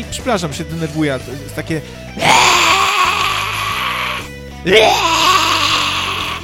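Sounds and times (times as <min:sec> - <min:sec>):
speech: 0:00.1 - 0:02.3, 0:04.6 - 0:05.2
voice imitating a neighbour's screechy wailing singing: 0:02.2 - 0:06.4.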